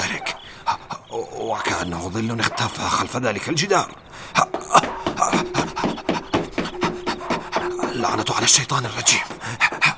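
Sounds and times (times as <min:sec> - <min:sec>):
speech: 0:01.5 - 0:04.5, 0:08.0 - 0:09.6
vicious dog panting: 0:04.8 - 0:09.9.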